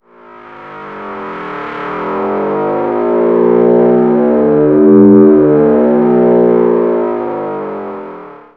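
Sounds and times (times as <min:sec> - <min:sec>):
synth pad: 0:00.2 - 0:08.5.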